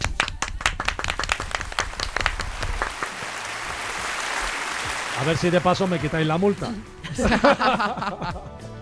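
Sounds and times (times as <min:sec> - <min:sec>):
applause: 0:00.0 - 0:06.8
speech: 0:05.2 - 0:08.5
laughter: 0:07.0 - 0:08.6.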